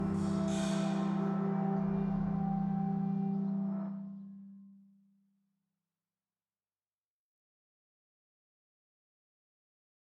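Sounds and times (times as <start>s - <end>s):
oboe: 0.0s - 4.5s
flute: 0.0s - 4.7s.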